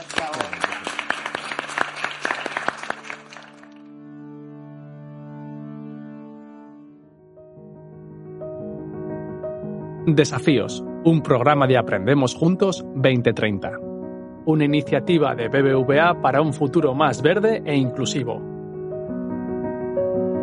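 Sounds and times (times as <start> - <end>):
audience applause: 0.0 - 4.0
sustained tonal music: 0.6 - 20.4
speech: 10.1 - 18.5.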